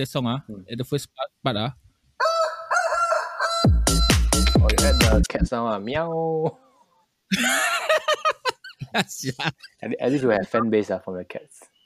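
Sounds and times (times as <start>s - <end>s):
speech: 0.0s - 1.8s, 3.6s - 6.6s, 7.3s - 7.6s, 8.9s - 11.7s
chicken crowing sound effect: 2.2s - 4.1s
laughter: 7.3s - 10.7s.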